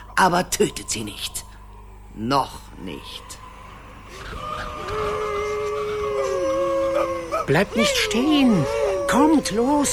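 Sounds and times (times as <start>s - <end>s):
speech: 0.2s - 1.4s, 2.2s - 3.4s, 7.5s - 9.9s
pack of hounds howling as they hunt: 4.1s - 9.9s.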